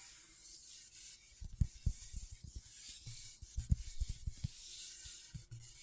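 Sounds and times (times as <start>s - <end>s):
scratchboard scratching: 1.3s - 5.8s.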